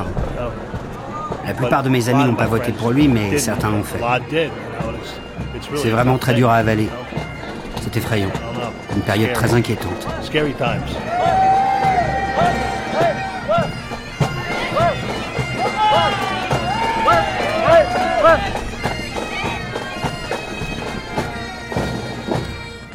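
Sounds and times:
street parade crowd murmur: 0:00.0 - 0:22.9
speech: 0:01.5 - 0:11.4
children shouting and cheering at a street parade: 0:11.0 - 0:21.3.

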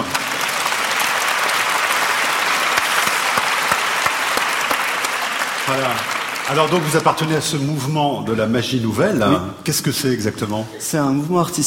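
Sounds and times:
audience applause: 0:00.0 - 0:08.0
speech: 0:05.7 - 0:11.6.

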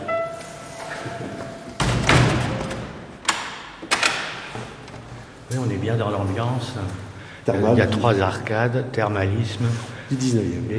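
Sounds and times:
door closing: 0:00.0 - 0:05.0
speech: 0:05.5 - 0:10.7.

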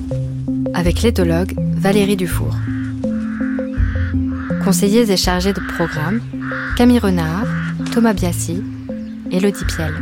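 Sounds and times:
sustained low musical drone: 0:00.0 - 0:10.0
speech: 0:00.8 - 0:02.8, 0:04.6 - 0:08.7, 0:09.3 - 0:10.0
crow cawing: 0:02.5 - 0:08.0, 0:08.9 - 0:10.0.

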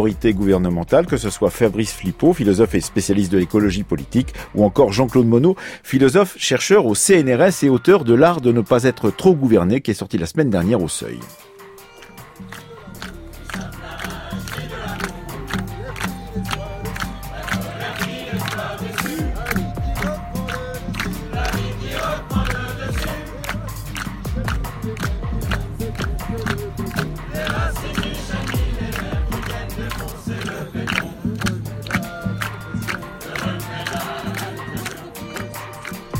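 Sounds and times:
speech: 0:00.0 - 0:11.5
crowd of mingling voices at an Extinction Rebellion gathering at Parc de la Villette: 0:12.4 - 0:36.1.

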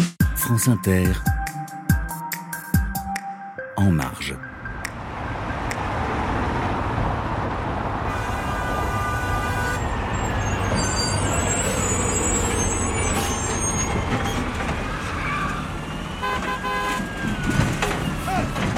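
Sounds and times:
speech: 0:00.5 - 0:01.4, 0:03.8 - 0:04.5
city traffic: 0:02.8 - 0:18.7
engines and exhaust pipes: 0:04.6 - 0:18.7.

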